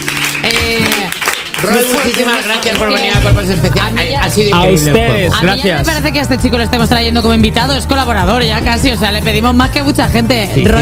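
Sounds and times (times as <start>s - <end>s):
audience applause: 0.0s - 3.2s
speech: 1.6s - 10.8s.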